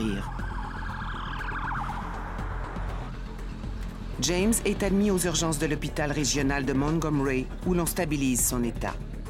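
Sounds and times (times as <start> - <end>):
ambulance siren: 0.0 - 3.2
speech: 4.2 - 9.1.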